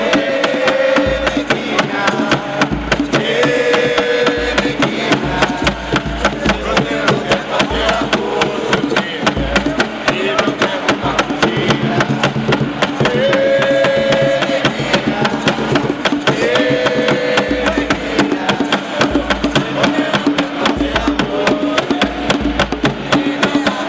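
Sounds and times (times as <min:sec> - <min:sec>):
batuque de umbigada drumming in Piracicaba: 0:00.0 - 0:23.8.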